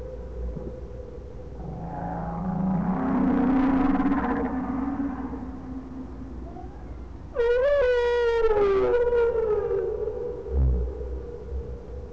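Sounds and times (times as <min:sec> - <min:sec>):
whale calls: 0:01.6 - 0:10.9.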